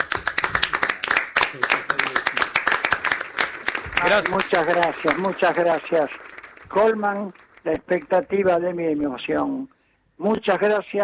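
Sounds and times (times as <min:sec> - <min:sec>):
applause: 0:00.0 - 0:08.7
speech: 0:01.5 - 0:01.8, 0:04.0 - 0:11.0.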